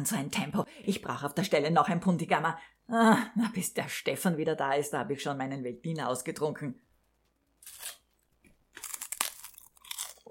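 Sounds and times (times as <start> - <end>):
speech: 0.0 - 6.9
chewing crunchy rice cakes: 7.6 - 10.3.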